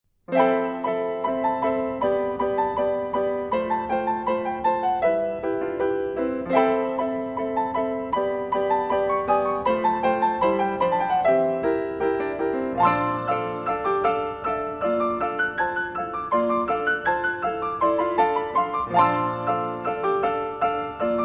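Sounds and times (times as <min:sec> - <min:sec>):
piano: 0:00.1 - 0:21.2.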